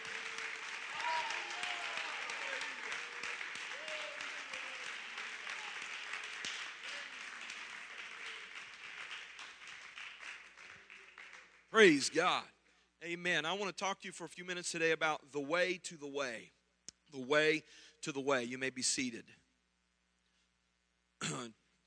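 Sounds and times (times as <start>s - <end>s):
audience applause: 0.0s - 12.0s
speech: 11.8s - 19.4s.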